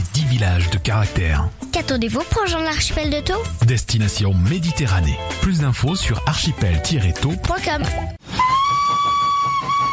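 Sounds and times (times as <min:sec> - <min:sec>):
speech: 0:00.4 - 0:08.2
steam train whistle: 0:08.2 - 0:09.9.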